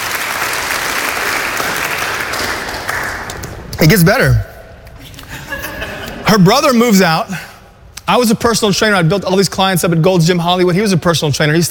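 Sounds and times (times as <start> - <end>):
audience applause: 0.0 - 3.5
speech: 3.8 - 4.5, 6.3 - 7.5, 8.1 - 11.6
laughter: 5.0 - 6.3.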